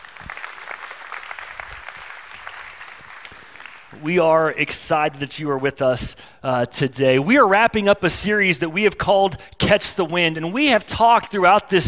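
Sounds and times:
church congregation applauding during a worship service: 0.0 - 4.0
speech: 4.0 - 11.8.

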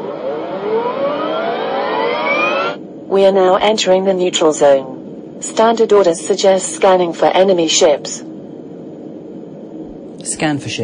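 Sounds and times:
starship warp engine engaging: 0.0 - 2.8
speech: 3.1 - 8.3, 10.2 - 10.8.

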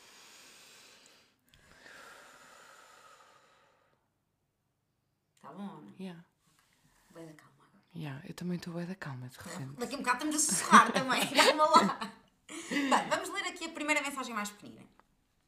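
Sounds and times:
deep breaths in a breathing exercise: 0.0 - 4.2
speech: 5.4 - 6.3, 7.1 - 15.0
laughter: 10.2 - 13.3.

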